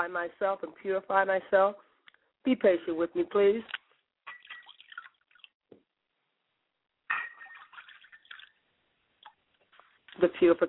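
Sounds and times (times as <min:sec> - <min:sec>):
speech: 0:00.0 - 0:03.8, 0:10.2 - 0:10.6
libation liquid pouring: 0:04.2 - 0:05.6, 0:07.1 - 0:09.4.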